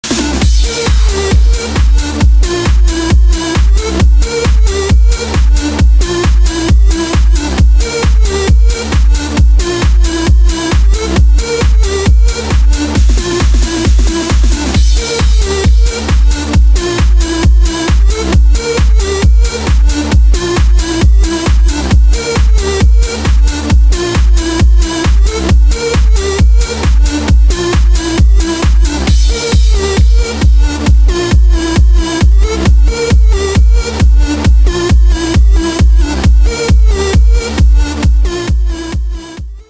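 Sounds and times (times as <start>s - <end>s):
electro mix: 0.0s - 39.6s.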